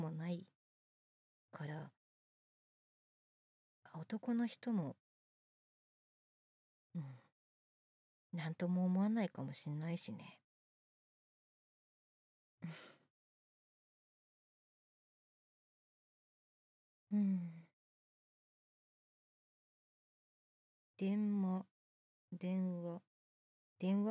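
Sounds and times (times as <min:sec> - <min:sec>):
boyish new female voice actress performing: 0:00.0 - 0:00.5, 0:01.6 - 0:01.9, 0:03.9 - 0:05.0, 0:08.4 - 0:10.4, 0:21.0 - 0:21.7, 0:22.4 - 0:23.0, 0:23.8 - 0:24.0.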